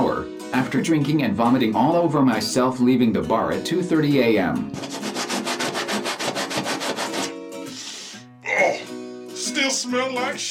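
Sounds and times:
speech: 0.6 - 5.1, 9.9 - 10.5
applicator rubbing on treated areas: 4.7 - 8.0.

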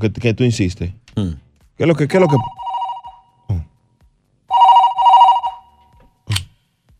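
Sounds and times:
speech: 0.0 - 2.6
telephone ringing with incoming call: 2.3 - 3.3, 4.5 - 5.8.

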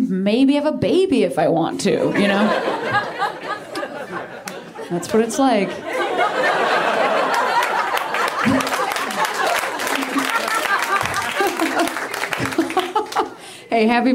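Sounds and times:
speech: 0.1 - 3.4, 4.9 - 6.6, 13.7 - 14.1
laughter: 2.1 - 13.4
excited voices: 3.8 - 13.3
crowd applauding: 6.2 - 13.5.

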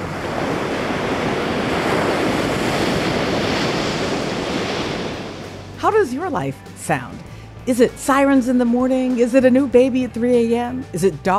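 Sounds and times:
ocean waves at the beach: 0.0 - 11.3
speech: 5.9 - 11.3.

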